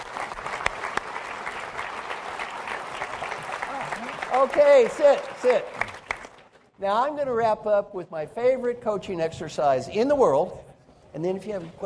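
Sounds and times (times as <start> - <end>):
round of applause: 0.0 - 6.6
speech: 4.4 - 5.9, 6.8 - 11.8.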